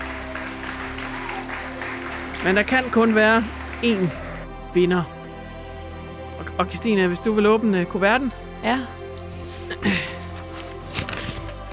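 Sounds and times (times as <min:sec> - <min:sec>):
audience applause: 0:00.0 - 0:04.6
speech: 0:02.4 - 0:05.2, 0:06.6 - 0:09.0, 0:09.8 - 0:10.2.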